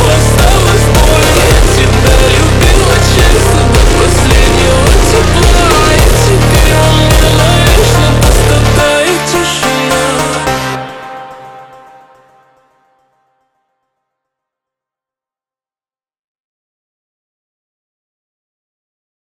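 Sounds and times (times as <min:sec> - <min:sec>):
Russian funk slowed with reverb: 0:00.0 - 0:13.4.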